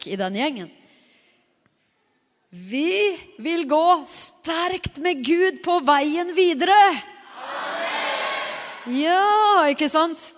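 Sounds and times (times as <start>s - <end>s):
speech: 0.0s - 0.8s, 2.5s - 7.7s, 8.8s - 10.3s
audience shouting loudly together: 7.3s - 8.8s.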